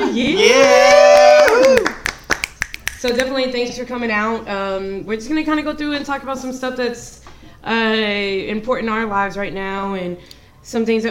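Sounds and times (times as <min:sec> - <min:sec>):
speech: 0:00.1 - 0:00.7, 0:03.0 - 0:11.0
applause: 0:01.1 - 0:03.0.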